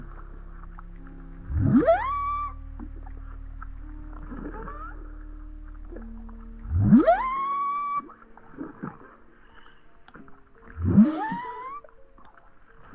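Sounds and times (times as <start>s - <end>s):
whale rising whoops: 1.5s - 2.6s, 4.3s - 5.2s, 6.7s - 8.2s, 10.8s - 11.9s
whale grunts and moans: 1.5s - 3.0s, 4.3s - 5.3s, 6.7s - 9.0s, 10.7s - 11.9s.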